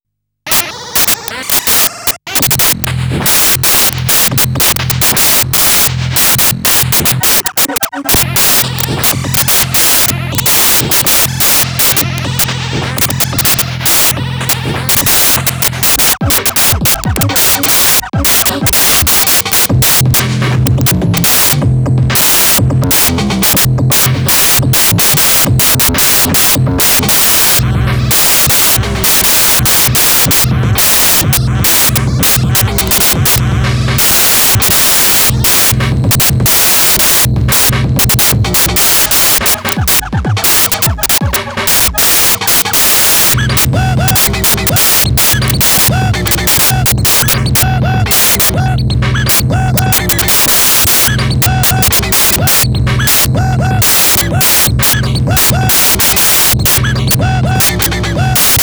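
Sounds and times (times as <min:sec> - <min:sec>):
industrial mood music: 0:00.5 - 0:58.6.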